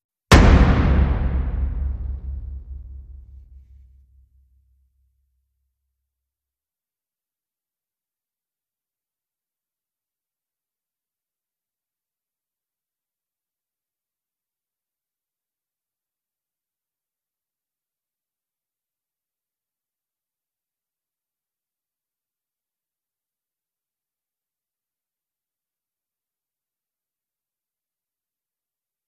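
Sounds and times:
huge hits: 0:00.3 - 0:03.8.

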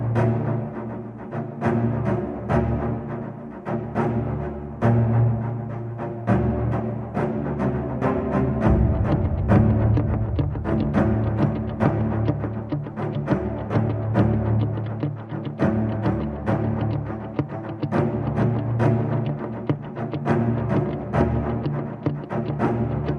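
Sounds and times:
strings: 0:00.0 - 0:23.1
guitars: 0:06.5 - 0:23.1.

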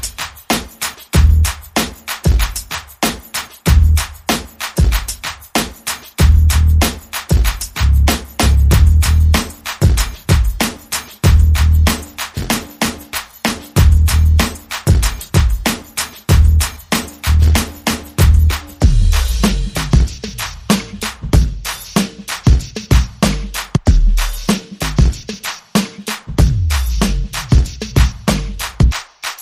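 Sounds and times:
drums: 0:00.0 - 0:29.4
bass: 0:01.2 - 0:01.6, 0:03.7 - 0:04.1, 0:06.2 - 0:06.9, 0:07.8 - 0:09.5, 0:11.2 - 0:12.0, 0:13.8 - 0:14.5, 0:16.3 - 0:22.0, 0:23.0 - 0:25.2, 0:26.3 - 0:28.9.

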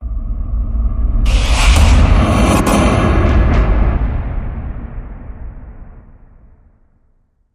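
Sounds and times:
stutter hit: 0:01.2 - 0:06.9.

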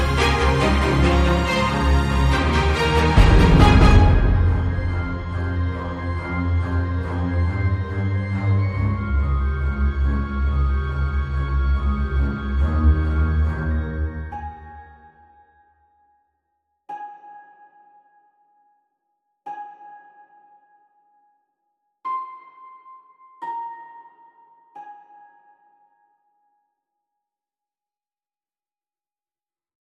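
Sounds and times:
orchestral music: 0:00.0 - 0:14.8.

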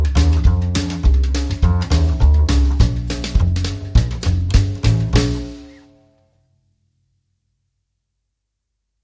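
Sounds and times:
down home acoustic bass: 0:00.0 - 0:06.1.

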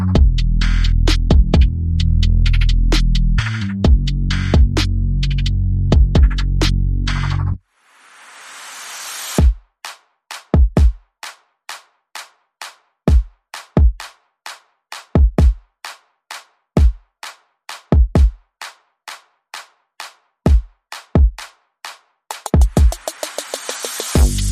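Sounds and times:
drums: 0:00.0 - 0:07.4, 0:09.3 - 0:11.0, 0:11.7 - 0:24.5
bass: 0:00.0 - 0:07.6, 0:24.2 - 0:24.5.

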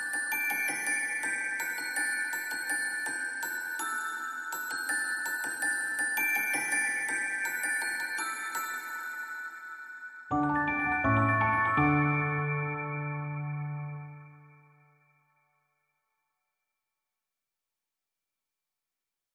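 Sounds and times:
bells: 0:00.0 - 0:14.6
piano: 0:10.3 - 0:15.0.

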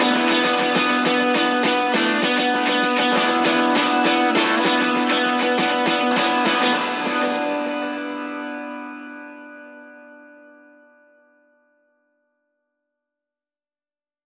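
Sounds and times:
lead guitars: 0:00.0 - 0:11.2.

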